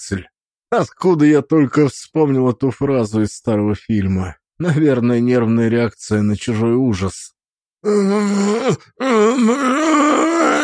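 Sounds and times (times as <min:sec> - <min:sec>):
speech: 0:00.0 - 0:10.6
man roaring in agony: 0:07.8 - 0:10.6.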